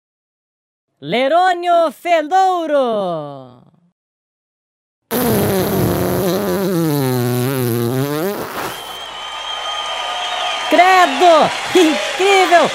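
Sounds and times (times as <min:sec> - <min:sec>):
speech: 0:01.0 - 0:03.7, 0:10.8 - 0:12.7
fart sound effect: 0:05.1 - 0:09.0.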